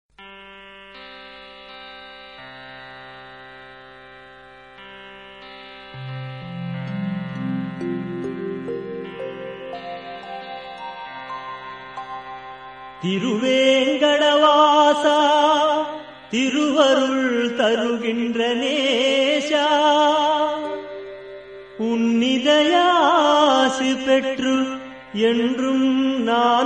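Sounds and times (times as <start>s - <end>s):
devotional song to Lord Balaji: 5.4s - 26.6s.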